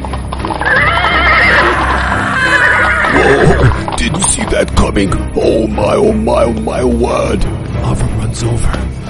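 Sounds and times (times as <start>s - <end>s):
horse-drawn wagon rumbling through a dark forest: 0.0s - 7.4s
horse neighing: 0.4s - 4.0s
speech: 4.9s - 8.9s.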